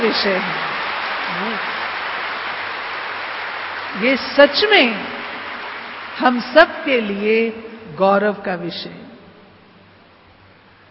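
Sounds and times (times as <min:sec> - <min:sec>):
speech: 0:00.0 - 0:00.7, 0:01.3 - 0:01.8, 0:03.9 - 0:05.2, 0:06.2 - 0:09.0
large audience applause at a Hindi-speaking gathering: 0:00.0 - 0:07.6.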